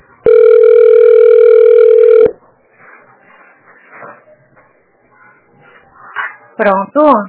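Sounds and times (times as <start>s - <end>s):
telephone ringing tone as a call is transferred: 0.3s - 2.3s
speech: 6.7s - 7.2s.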